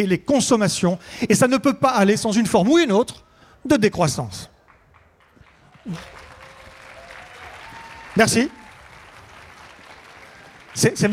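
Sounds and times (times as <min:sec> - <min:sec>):
speech: 0:00.0 - 0:04.5, 0:05.8 - 0:06.2, 0:08.2 - 0:08.6, 0:10.8 - 0:11.1
audience applause at a conference: 0:04.6 - 0:11.1.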